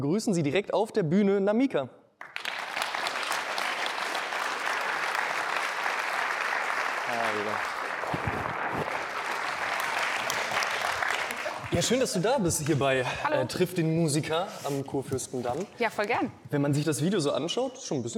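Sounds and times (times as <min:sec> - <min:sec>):
speech: 0:00.0 - 0:02.5, 0:11.7 - 0:18.1
audience applause: 0:02.2 - 0:12.2.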